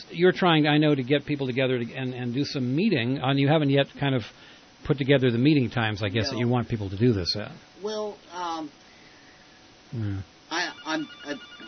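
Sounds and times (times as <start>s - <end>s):
speech: 0.1s - 8.8s, 9.9s - 10.3s, 10.9s - 11.6s
telephone ringing: 10.5s - 11.6s.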